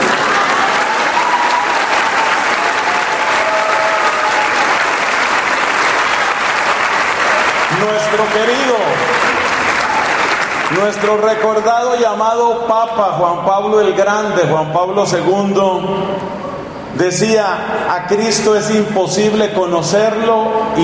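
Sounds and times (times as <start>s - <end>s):
crowd applause: 0.0s - 11.5s
speech: 7.9s - 9.0s, 10.7s - 16.4s, 17.0s - 20.8s.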